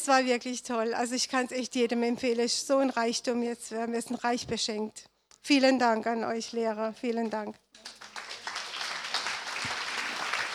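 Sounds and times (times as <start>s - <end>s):
speech: 0.0s - 8.0s
audience applause: 7.8s - 10.5s.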